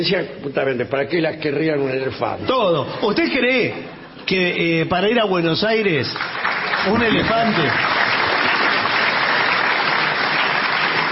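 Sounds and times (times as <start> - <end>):
speech: 0.0 - 8.1
audience applause: 6.2 - 11.1.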